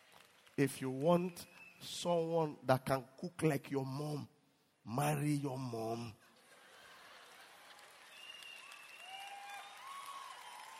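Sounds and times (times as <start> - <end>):
crowd applauding: 0.0 - 1.8, 6.5 - 10.7
speech: 0.6 - 6.3.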